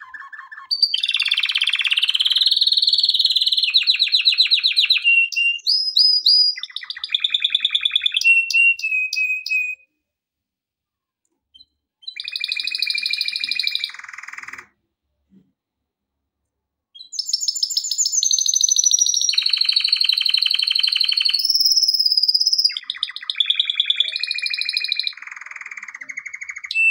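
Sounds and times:
canary song with trills and whistles: 0.0 - 9.9, 11.6 - 14.8, 16.9 - 26.8.

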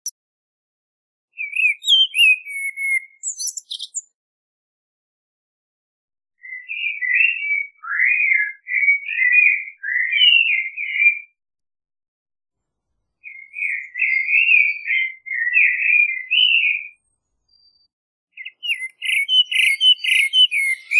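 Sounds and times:
common blackbird singing: 1.4 - 4.1, 6.4 - 11.4, 13.2 - 20.9.

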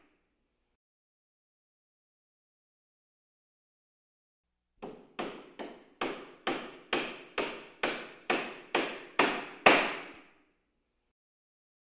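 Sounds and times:
carpentry work: 4.8 - 10.4.

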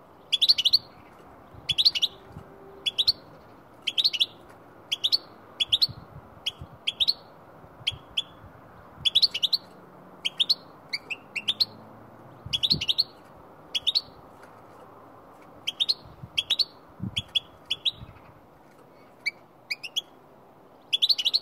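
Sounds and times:
goldfinch calling: 0.3 - 1.1, 1.7 - 7.2, 9.0 - 11.8, 12.5 - 14.2, 15.7 - 18.2, 20.9 - 21.4.

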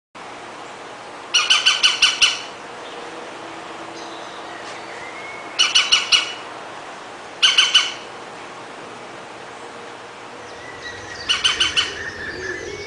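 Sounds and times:
European green woodpecker ringing calls: 1.3 - 2.5, 5.2 - 6.4, 7.4 - 8.1, 10.5 - 12.8.

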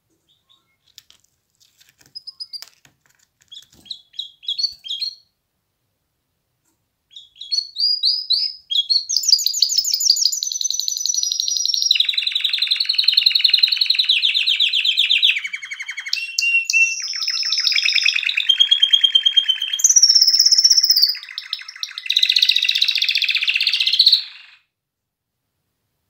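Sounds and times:
canary singing trills and rolling tours: 0.3 - 1.0, 2.1 - 2.7, 3.5 - 5.3, 7.1 - 24.7.

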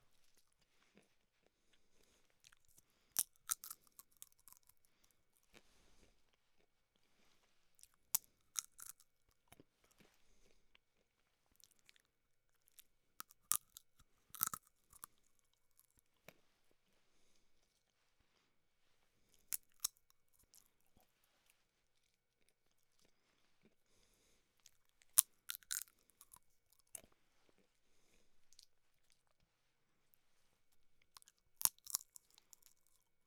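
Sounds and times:
person eating seeds: 0.1 - 16.4, 19.3 - 21.1, 24.6 - 29.3, 31.0 - 33.1.

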